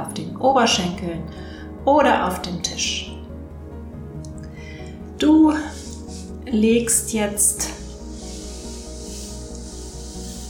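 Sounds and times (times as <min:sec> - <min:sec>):
speech: 0:00.4 - 0:03.1, 0:05.2 - 0:05.8, 0:06.5 - 0:07.8
hands rubbing over a sheet of paper: 0:05.5 - 0:06.4, 0:07.7 - 0:10.4.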